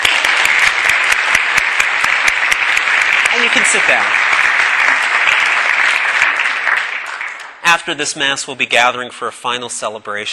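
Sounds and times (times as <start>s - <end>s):
large crowd applauding: 0.0s - 7.9s
speech: 3.4s - 4.3s, 7.7s - 10.3s.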